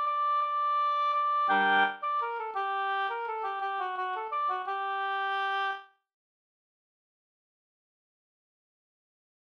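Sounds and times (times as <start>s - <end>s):
waltz music: 0.1s - 5.8s.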